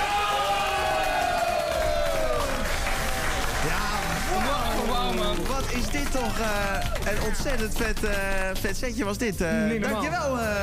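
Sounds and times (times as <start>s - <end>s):
audience cheering: 0.0s - 7.9s
audience applause: 0.0s - 8.9s
speech: 5.3s - 10.6s.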